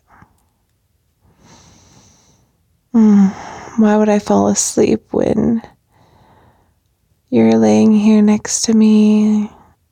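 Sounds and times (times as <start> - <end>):
person yawning: 3.0 - 3.6
speech: 3.0 - 5.8, 7.3 - 9.6.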